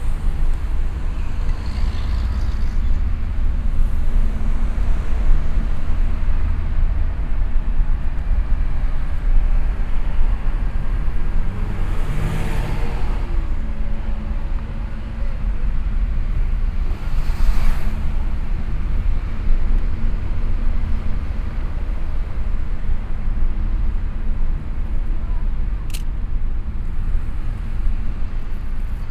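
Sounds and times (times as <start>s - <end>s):
street ambience in Brazil: 0.0s - 29.0s.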